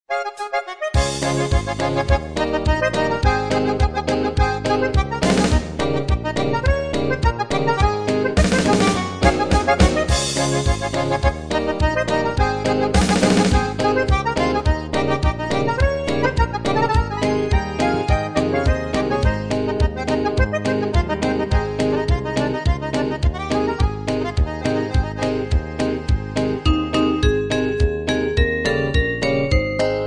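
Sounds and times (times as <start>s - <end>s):
MIDI music: 0.1s - 30.0s.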